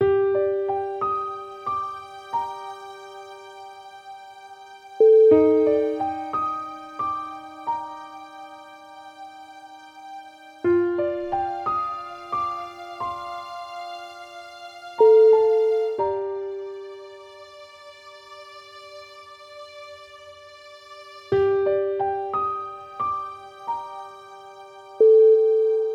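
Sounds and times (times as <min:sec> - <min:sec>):
sad sorrowful music: 0:00.0 - 0:25.9.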